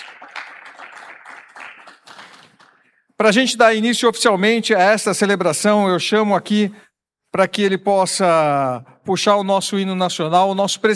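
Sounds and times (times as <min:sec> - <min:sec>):
crowd applause at a Brazilian civic ceremony welcoming Tiro de Guerra shooters: 0:00.0 - 0:02.9
speech: 0:03.2 - 0:10.9.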